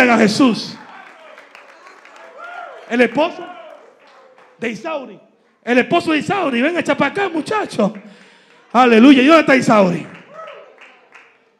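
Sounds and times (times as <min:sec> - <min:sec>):
speech: 0:00.0 - 0:00.8, 0:02.9 - 0:03.6, 0:04.6 - 0:10.2
audience applause: 0:00.7 - 0:04.6, 0:07.9 - 0:09.3, 0:09.9 - 0:11.5.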